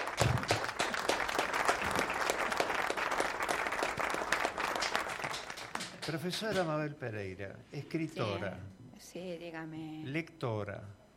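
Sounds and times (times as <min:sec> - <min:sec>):
audience applause: 0:00.0 - 0:06.4
speech: 0:06.1 - 0:11.0.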